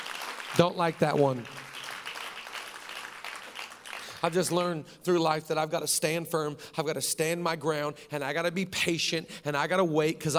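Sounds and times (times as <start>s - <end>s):
few people clapping: 0.0s - 4.7s
speech: 0.6s - 1.6s, 4.2s - 10.3s.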